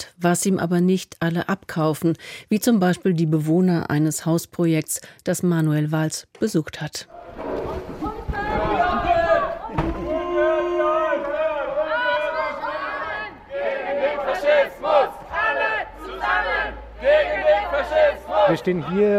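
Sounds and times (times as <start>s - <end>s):
speech: 0.0s - 7.7s, 18.5s - 19.1s
protest crowd chanting outside a house: 7.1s - 19.1s.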